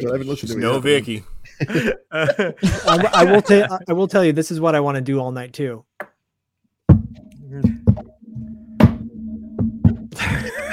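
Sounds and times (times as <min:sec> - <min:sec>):
speech: 0:00.0 - 0:05.9
laughter: 0:01.4 - 0:03.9, 0:10.2 - 0:10.7
rhythmic tapping like Morse code: 0:06.9 - 0:10.7.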